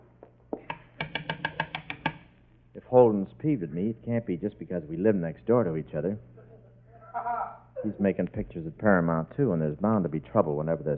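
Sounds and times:
knocking on a door: 0:00.7 - 0:02.2
speech: 0:02.9 - 0:06.3, 0:07.2 - 0:10.9.

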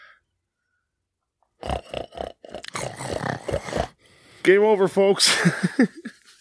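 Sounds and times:
pigs grunting and snorting: 0:01.6 - 0:04.0
speech: 0:04.4 - 0:06.1
laughter: 0:05.2 - 0:06.2.

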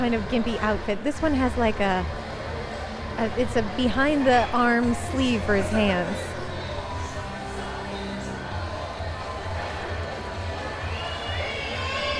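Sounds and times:
speech: 0:00.0 - 0:02.2, 0:03.2 - 0:06.3
dense crowd shouting and cheering: 0:04.5 - 0:12.1.

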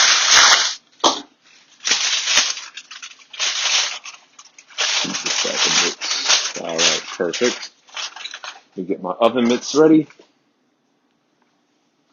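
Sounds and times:
aluminium foil torn and pressed over a roasting tray of short ribs: 0:00.0 - 0:00.8, 0:01.6 - 0:08.7
speech: 0:07.2 - 0:07.8, 0:08.8 - 0:10.2.

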